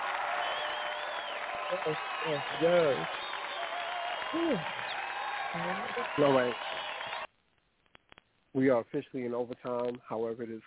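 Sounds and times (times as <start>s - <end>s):
applause: 0.0s - 7.3s
speech: 1.7s - 3.2s, 4.3s - 4.8s, 5.5s - 6.8s, 8.5s - 10.6s.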